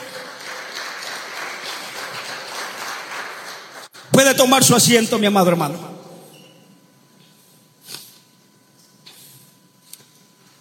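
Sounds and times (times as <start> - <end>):
audience applauding: 0.0 - 4.1
speech: 4.2 - 5.9.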